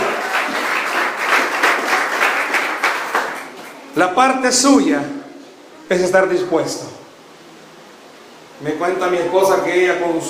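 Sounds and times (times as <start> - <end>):
audience applause: 0.0 - 3.8
speech: 4.0 - 5.2, 5.9 - 7.0, 8.6 - 10.2.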